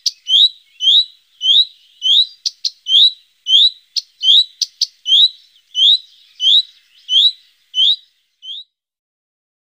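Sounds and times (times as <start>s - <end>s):
common redstart singing: 0.0s - 8.8s.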